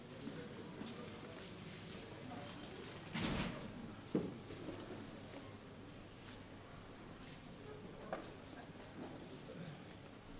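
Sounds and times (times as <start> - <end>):
murmur of quiet voices in the reading hall of the Austrian National Library: 0.0 - 10.3.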